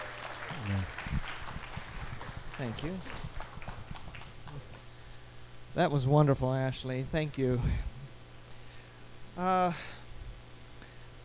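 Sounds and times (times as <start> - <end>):
audience applause: 0.0 - 4.8
speech: 2.6 - 3.3, 5.8 - 7.9, 9.4 - 10.0.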